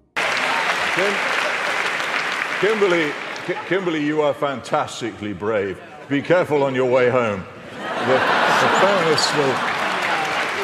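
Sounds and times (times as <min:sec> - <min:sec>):
crowd clapping: 0:00.0 - 0:04.6, 0:07.9 - 0:10.6
speech: 0:01.0 - 0:01.4, 0:02.6 - 0:09.7.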